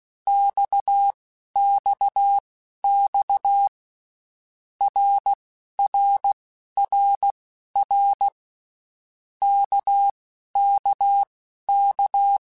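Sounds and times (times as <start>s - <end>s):
Morse code letter groups: 0.3s - 3.7s, 4.8s - 8.4s, 9.4s - 12.4s.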